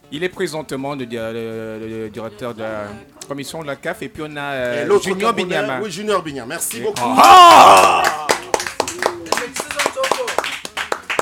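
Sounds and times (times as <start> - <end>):
speech: 0.1 - 8.2
studio audience applause: 7.0 - 11.2.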